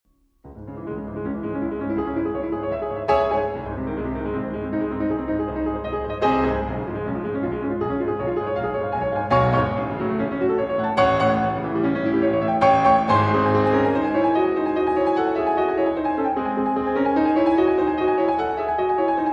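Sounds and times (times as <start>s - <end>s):
piano sonata, fast agitated movement: 0.5s - 19.3s.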